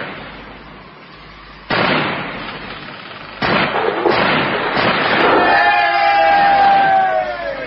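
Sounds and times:
ship's guns firing in a radio drama naval attack: 0:01.7 - 0:07.0
crowd-like roar: 0:05.2 - 0:07.6.

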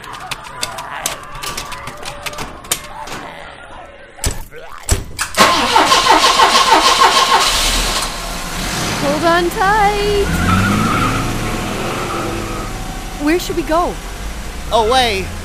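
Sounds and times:
clicks: 0:00.0 - 0:03.4
ambulance engine cranking, catching and idling: 0:05.3 - 0:15.4
speech: 0:09.4 - 0:10.6, 0:13.2 - 0:14.1, 0:14.7 - 0:15.4.

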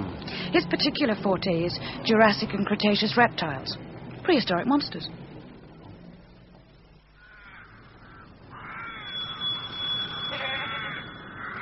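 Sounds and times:
speech: 0:00.5 - 0:05.2
goats bleating: 0:10.3 - 0:11.0.

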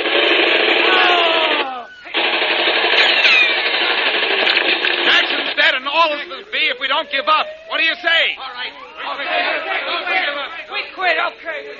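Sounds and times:
rapid gunfire in a radio drama: 0:00.0 - 0:06.2
speech: 0:07.0 - 0:11.7.

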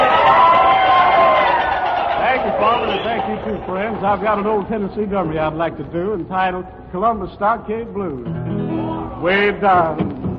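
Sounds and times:
audience applauding and cheering to welcome a country singer: 0:00.0 - 0:04.7
speech: 0:03.4 - 0:10.1.

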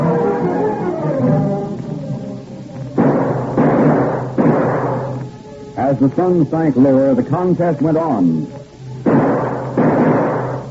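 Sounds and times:
low steady hum: 0:00.0 - 0:10.7
gunshots during trick shooting in a radio drama: 0:03.0 - 0:05.2, 0:09.0 - 0:10.7
speech: 0:06.0 - 0:08.6.

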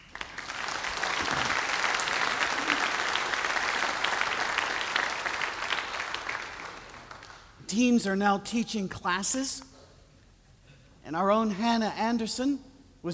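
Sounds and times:
audience applause: 0:00.0 - 0:07.6
speech: 0:07.7 - 0:09.7, 0:11.1 - 0:13.1.

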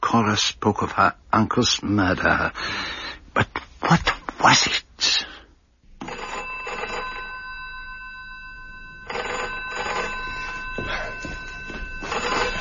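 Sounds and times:
speech: 0:00.1 - 0:05.3
telephone ringing: 0:06.0 - 0:12.6.

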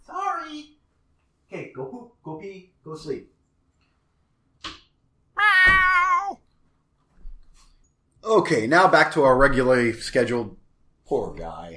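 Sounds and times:
speech: 0:01.8 - 0:03.3, 0:08.4 - 0:11.7
cat meowing: 0:05.4 - 0:06.4.

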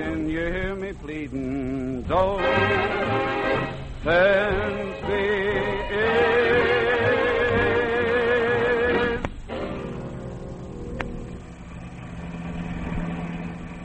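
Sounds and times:
car engine running: 0:00.0 - 0:13.8
speech: 0:00.1 - 0:03.2
wavering tonal music: 0:01.5 - 0:13.8.

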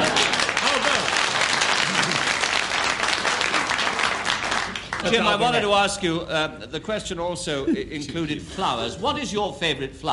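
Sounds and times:
audience applause: 0:00.0 - 0:05.5
speech: 0:05.0 - 0:10.1.

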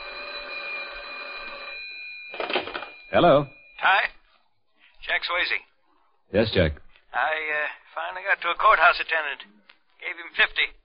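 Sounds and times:
telephone ringing with an incoming call: 0:00.0 - 0:04.4
speech: 0:03.1 - 0:04.2, 0:05.1 - 0:05.7, 0:06.3 - 0:10.8.

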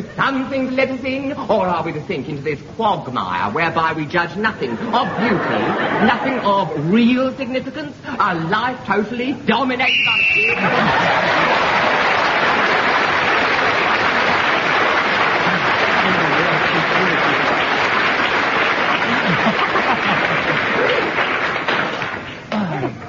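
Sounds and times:
speech: 0:00.3 - 0:11.6
laughter: 0:04.7 - 0:06.7, 0:10.4 - 0:12.8, 0:15.3 - 0:17.7, 0:18.7 - 0:21.4
audience applause: 0:10.6 - 0:22.5.

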